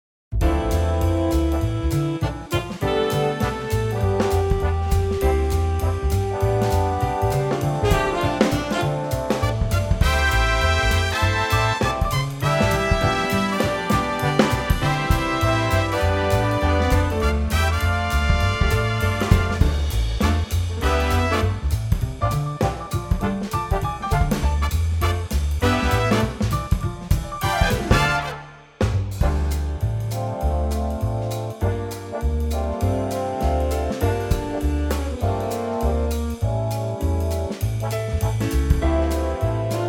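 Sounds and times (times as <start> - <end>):
big band playing in D minor: 0.3 - 39.8.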